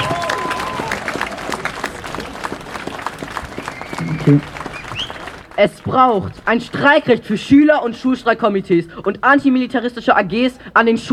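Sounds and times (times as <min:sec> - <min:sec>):
applause: 0:00.0 - 0:06.9
speech: 0:04.3 - 0:04.5, 0:05.6 - 0:11.1.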